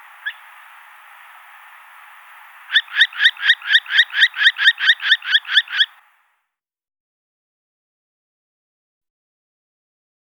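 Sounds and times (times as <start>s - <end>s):
northern hawk-owl screeching: 0.1s - 1.2s, 2.6s - 6.0s.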